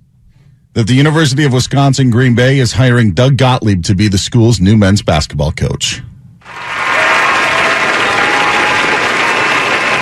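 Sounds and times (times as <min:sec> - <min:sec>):
speech: 0:00.8 - 0:06.8
canned applause sound effect: 0:06.4 - 0:10.0.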